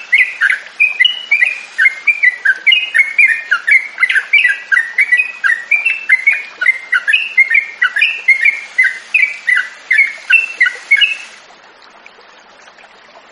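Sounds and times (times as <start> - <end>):
yellow-vented bulbul song of short sharp chirps: 0.0 - 11.4.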